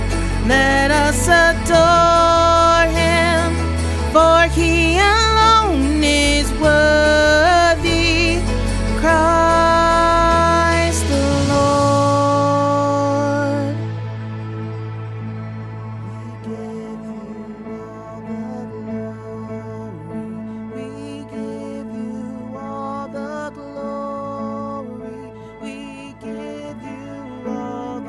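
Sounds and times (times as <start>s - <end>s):
alto voice singing with lead in a Christmas choir: 0.0s - 28.0s.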